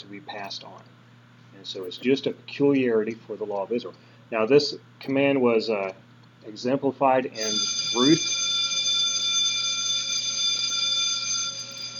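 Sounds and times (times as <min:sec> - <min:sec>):
speech: 0:00.0 - 0:08.4
timer bell signalling time is up: 0:07.4 - 0:11.9.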